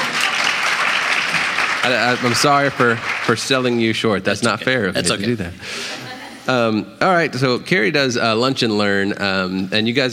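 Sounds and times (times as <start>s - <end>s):
audience clapping: 0.0s - 4.8s
speech: 1.8s - 10.1s.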